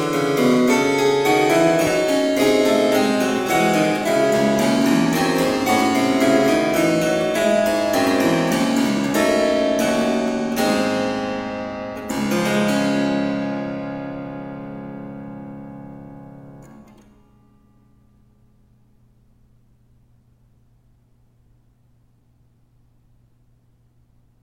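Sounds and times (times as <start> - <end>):
chorale prelude for organ: 0.0 - 18.1.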